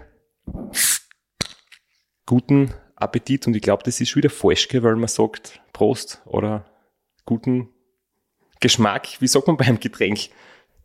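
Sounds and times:
bottle opening with rustling scrape and hissing gas: 0.5s - 1.8s
bottle pop: 0.7s - 1.8s
speech: 2.3s - 7.8s, 8.6s - 10.6s.

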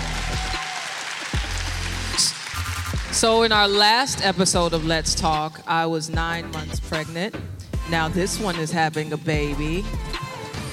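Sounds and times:
live audience clapping: 0.0s - 3.8s
speech: 3.2s - 10.1s.

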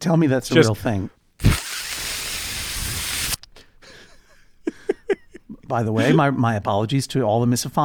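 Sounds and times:
speech: 0.0s - 1.2s, 5.7s - 7.8s
vocal imitation of full-body air dryer: 1.4s - 3.4s.

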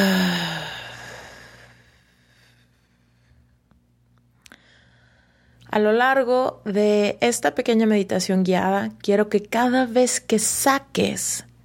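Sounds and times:
deep breath out during a guided meditation: 0.0s - 3.3s
speech: 5.8s - 11.5s.

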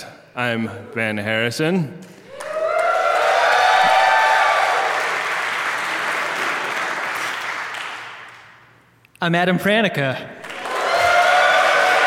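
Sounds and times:
speech: 0.0s - 2.2s, 9.2s - 10.4s
audience cheers: 2.3s - 6.7s, 10.5s - 12.0s
audience applause: 2.3s - 8.6s, 10.4s - 12.0s.

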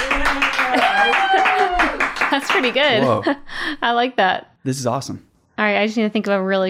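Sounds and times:
canned applause button sound effect with cheering and whoops: 0.0s - 3.2s
speech: 2.4s - 6.6s.

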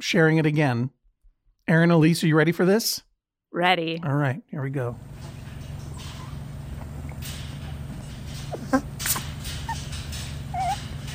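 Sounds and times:
speech: 0.0s - 1.0s, 1.7s - 5.1s, 8.7s - 8.9s
steady low hum: 4.9s - 11.1s
bat whimpering while yawning: 6.0s - 6.6s, 8.5s - 11.1s.

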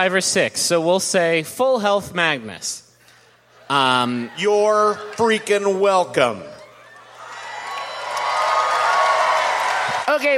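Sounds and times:
speech: 0.0s - 2.8s, 3.7s - 6.6s, 10.2s - 10.3s
small group of players clapping and cheering: 6.7s - 10.3s.

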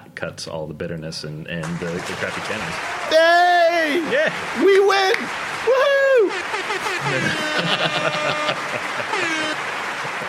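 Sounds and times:
speech: 0.2s - 9.8s
studio audience applause: 1.7s - 10.2s
laughter: 3.2s - 10.2s.

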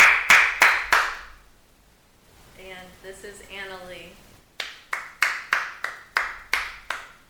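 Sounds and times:
person clapping hands: 0.0s - 1.3s, 4.6s - 7.2s.

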